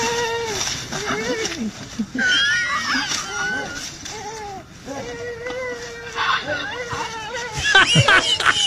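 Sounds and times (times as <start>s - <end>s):
elephant giggling: 1.0s - 3.8s, 6.2s - 8.6s.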